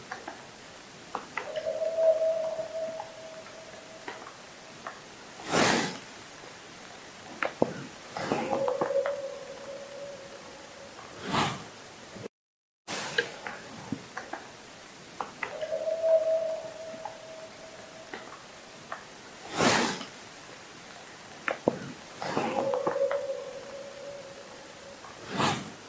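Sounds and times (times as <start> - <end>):
bigfoot call: 1.2 - 5.6, 7.6 - 11.4, 15.4 - 19.7, 21.5 - 25.6.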